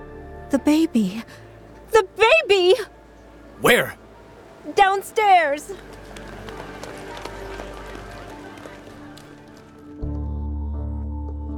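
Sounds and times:
speech: 0:00.5 - 0:02.9, 0:03.6 - 0:04.0, 0:04.6 - 0:06.0
crowd running footsteps: 0:05.9 - 0:09.8.

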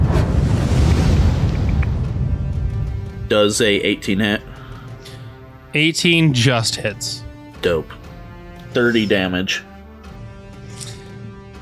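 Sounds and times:
Fire Bolt spell ball of fire roaring whoosh: 0:00.0 - 0:03.3
speech: 0:03.3 - 0:04.5, 0:05.7 - 0:08.0, 0:08.7 - 0:09.7.

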